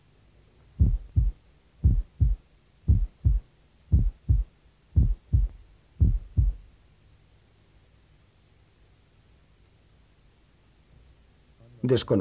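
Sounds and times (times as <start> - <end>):
faint low hum: 0.0 - 12.1
heartbeat heard through a stethoscope diaphragm: 0.8 - 6.7.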